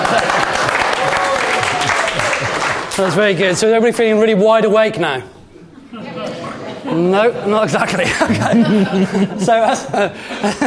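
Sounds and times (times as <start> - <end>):
laughter: 0.0 - 2.9, 5.6 - 10.6
audience round of applause: 0.0 - 3.5
speech: 3.0 - 5.4, 6.9 - 10.6.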